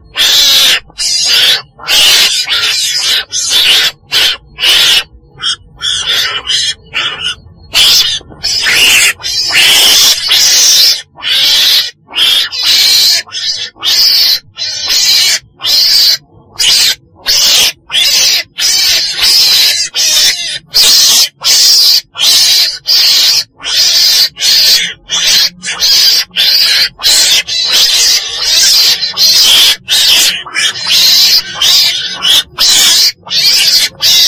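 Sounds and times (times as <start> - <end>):
weasel screeching: 0.0 - 34.2.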